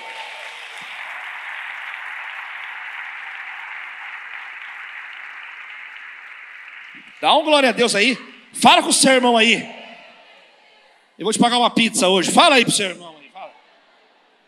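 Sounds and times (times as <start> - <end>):
audience applause: 0.0 - 9.5
speech: 7.0 - 9.8, 11.2 - 13.2.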